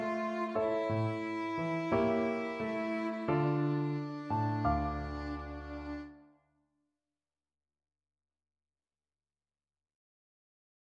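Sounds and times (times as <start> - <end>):
D harmonic minor scale: 0.0 - 6.2.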